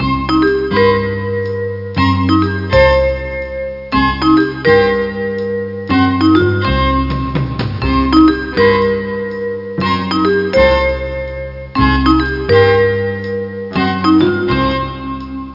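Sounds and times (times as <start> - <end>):
jazz loop: 0.0 - 15.5.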